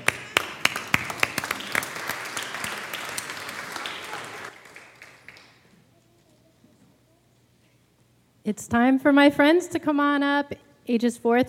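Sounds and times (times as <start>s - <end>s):
audience applause: 0.0s - 5.7s
speech: 8.5s - 11.4s.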